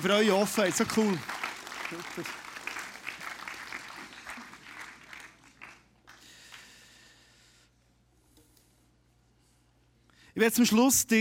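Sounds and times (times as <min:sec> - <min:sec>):
speech: 0:00.0 - 0:02.4, 0:10.4 - 0:11.1
audience applause: 0:00.0 - 0:06.6.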